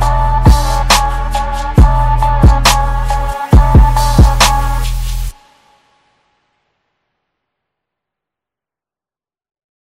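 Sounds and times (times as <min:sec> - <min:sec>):
phonk remix: 0:00.0 - 0:06.3.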